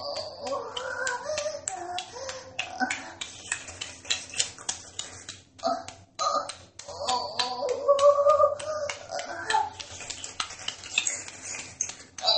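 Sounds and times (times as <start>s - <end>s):
person moaning in a bathroom: 0.0s - 3.2s, 5.6s - 9.8s, 12.2s - 12.3s.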